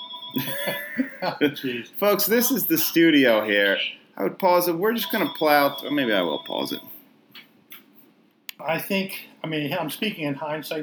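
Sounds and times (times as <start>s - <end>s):
laughter: 0.4s - 1.8s
speech: 0.4s - 6.9s, 8.6s - 10.8s
bell ringing: 5.0s - 7.0s.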